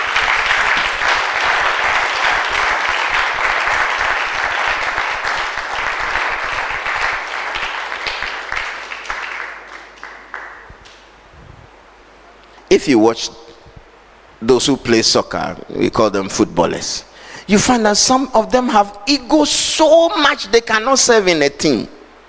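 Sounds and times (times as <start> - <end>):
audience clapping: 0.0 - 11.1
speech: 12.7 - 13.4, 14.4 - 22.0.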